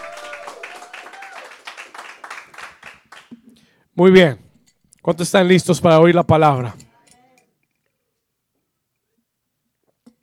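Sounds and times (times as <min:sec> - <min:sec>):
audience hand clapping: 0:00.0 - 0:03.5
speech: 0:04.0 - 0:04.4, 0:05.0 - 0:06.8.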